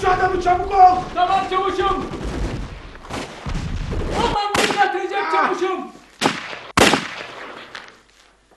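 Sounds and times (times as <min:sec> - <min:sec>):
speech: 0:00.2 - 0:02.0, 0:04.3 - 0:06.0
gunshot in a war drama: 0:01.8 - 0:04.9, 0:06.2 - 0:07.9.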